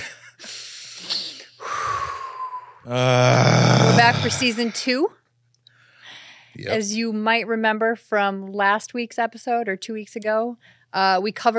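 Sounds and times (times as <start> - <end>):
big deep breaths: 0.0 - 3.0, 5.7 - 6.7
speech: 2.8 - 5.2, 6.6 - 11.5.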